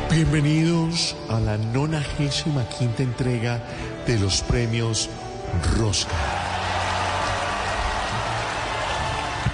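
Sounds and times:
speech: 0.1 - 6.5
audience applause: 6.1 - 9.5.

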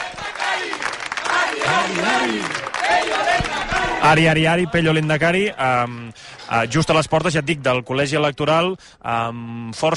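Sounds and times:
crowd of villagers cheering and clapping for a candidate: 0.0 - 5.2
speech: 1.9 - 9.9.

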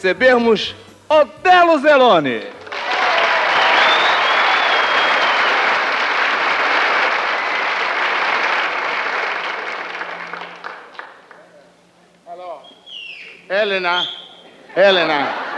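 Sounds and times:
speech: 0.0 - 2.6, 13.6 - 14.2, 14.8 - 15.4
audience applause: 2.6 - 11.4
whistle: 3.5 - 5.8, 12.6 - 14.6
laughter: 14.4 - 15.5.

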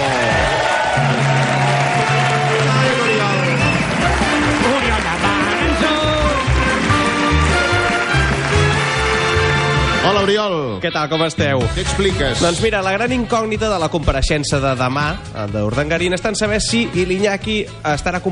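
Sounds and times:
loud audience applause: 0.0 - 10.1
speech: 10.5 - 18.3.

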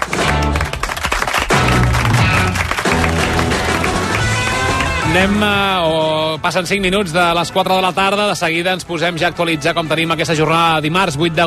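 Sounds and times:
applause: 0.0 - 5.2
speech: 5.2 - 11.4.

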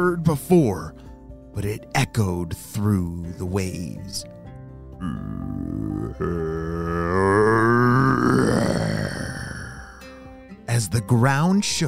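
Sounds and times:
speech: 0.0 - 1.0, 1.6 - 4.3, 5.0 - 8.8, 10.8 - 11.8
deep guttural monster growl made by a human voice: 5.0 - 10.0.

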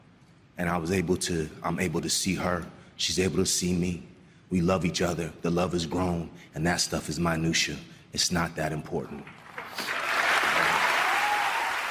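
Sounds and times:
speech: 0.6 - 9.9
steady audience applause: 9.4 - 11.8.

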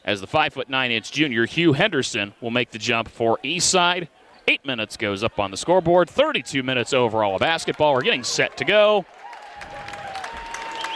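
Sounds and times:
speech: 0.0 - 9.7
round of applause from basketball crowd: 6.6 - 10.9
whistle: 10.7 - 10.9.

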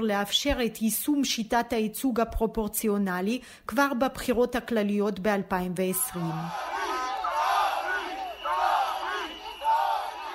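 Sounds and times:
speech: 0.0 - 6.8
large protest crowd shouting and chanting: 5.9 - 10.3.

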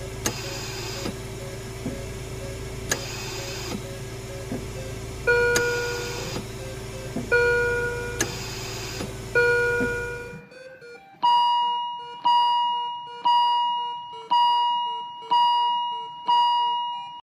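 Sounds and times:
mechanical hum: 0.0 - 10.5
intensive care unit equipment beeps: 0.0 - 17.2.

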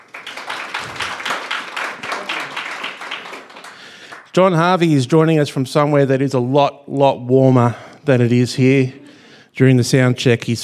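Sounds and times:
audience applauding to welcome a speaker at a talk on repatriation and resilience: 0.0 - 4.4
speech: 4.4 - 9.0, 9.6 - 10.6.

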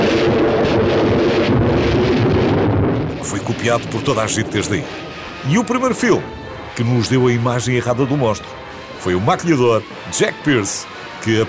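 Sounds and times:
thunder crash sound effect: 0.0 - 9.0
speech: 3.5 - 11.4.

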